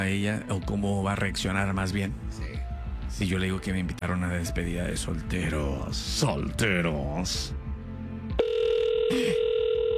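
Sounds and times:
speech: 0:00.0 - 0:02.5, 0:03.1 - 0:07.6, 0:09.1 - 0:09.4
telephone ringback tone on a call: 0:08.4 - 0:09.9.

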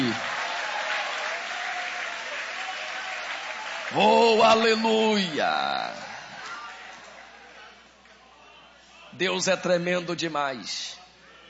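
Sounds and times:
audience applauding: 0:00.0 - 0:07.4
speech: 0:03.9 - 0:06.0, 0:09.2 - 0:11.0.

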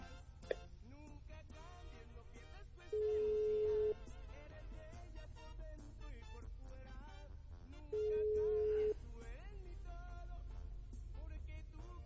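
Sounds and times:
telephone ringback on an unanswered outgoing call: 0:03.0 - 0:04.1, 0:08.0 - 0:09.0.

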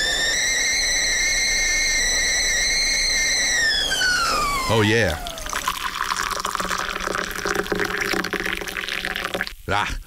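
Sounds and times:
kettle whistling: 0:00.0 - 0:09.5
speech: 0:04.7 - 0:05.3, 0:09.7 - 0:10.0
hot water pouring: 0:04.7 - 0:09.6.

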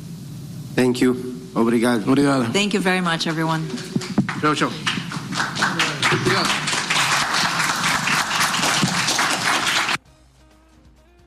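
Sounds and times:
speech: 0:00.8 - 0:06.7
crowd applause: 0:03.2 - 0:10.0.

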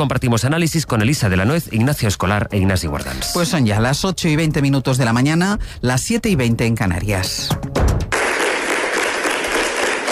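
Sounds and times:
speech: 0:00.0 - 0:07.8
applause at Cartagena city council for the mayor: 0:08.1 - 0:10.0.

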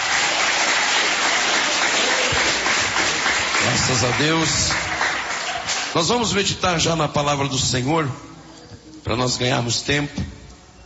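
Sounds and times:
audience clapping: 0:00.0 - 0:06.2
speech: 0:03.8 - 0:05.0, 0:06.0 - 0:08.3, 0:09.1 - 0:10.4.

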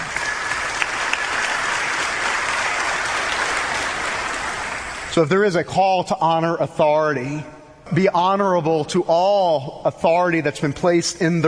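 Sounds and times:
audience applause: 0:00.0 - 0:05.1
speech: 0:05.2 - 0:11.4.

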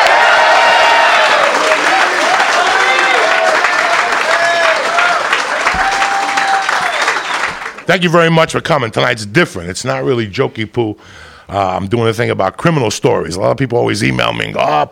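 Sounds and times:
audience applause: 0:00.0 - 0:08.1
speech: 0:07.9 - 0:14.9.

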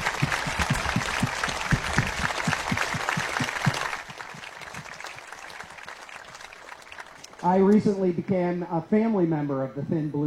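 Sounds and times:
audience applause: 0:00.0 - 0:08.0
speech: 0:07.5 - 0:10.2.

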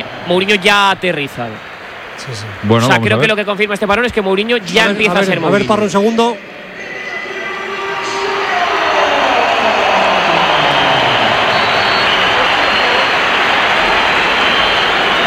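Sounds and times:
speech: 0:00.3 - 0:06.5
large stadium crowd whistling in disapproval: 0:04.6 - 0:15.2.

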